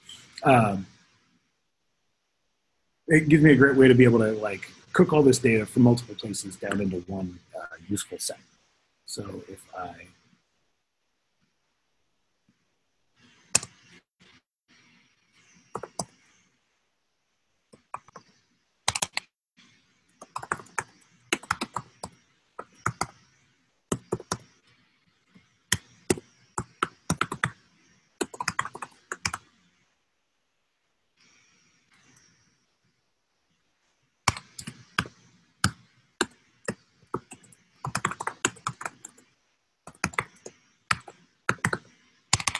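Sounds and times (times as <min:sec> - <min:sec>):
speech: 0:00.4 - 0:00.9, 0:03.1 - 0:10.2
typing on a computer keyboard: 0:13.4 - 0:14.0, 0:15.7 - 0:16.2, 0:17.7 - 0:19.3, 0:20.2 - 0:23.2, 0:23.9 - 0:24.5, 0:25.7 - 0:27.6, 0:28.2 - 0:29.5, 0:34.2 - 0:42.5.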